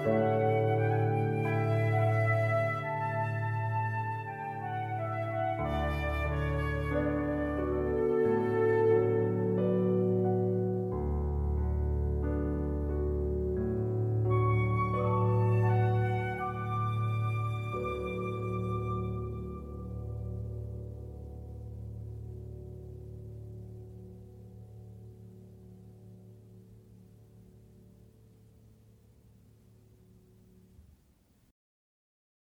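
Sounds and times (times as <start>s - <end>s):
flute: 0.0s - 10.8s, 14.0s - 21.0s
piano: 0.0s - 31.5s.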